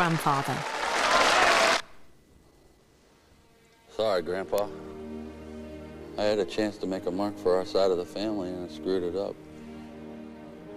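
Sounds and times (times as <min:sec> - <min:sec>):
speech: 0:00.0 - 0:00.9, 0:04.0 - 0:04.9, 0:06.2 - 0:09.5
peers in the House of Lords cheering and clapping: 0:00.0 - 0:02.0.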